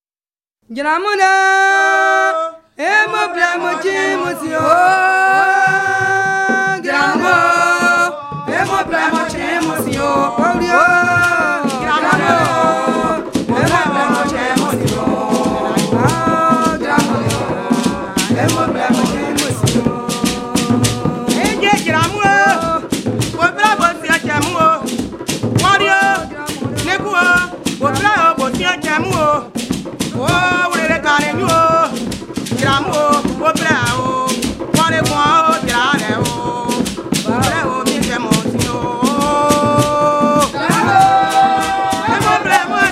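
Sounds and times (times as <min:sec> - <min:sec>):
Grebo choir singing a Grebo song: 0:01.2 - 0:29.4, 0:30.1 - 0:42.8.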